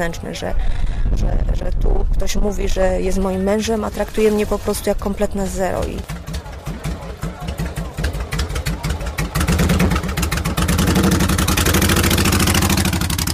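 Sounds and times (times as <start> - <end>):
speech: 0.0 - 6.2
motorcycle engine idling: 5.8 - 13.3.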